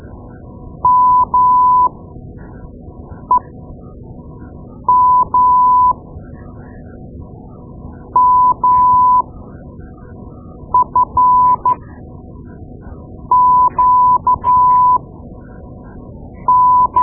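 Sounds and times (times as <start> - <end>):
morse code: 0.9 - 1.9, 4.9 - 5.9, 8.2 - 9.2, 10.8 - 11.8, 13.3 - 15.0, 16.5 - 17.0.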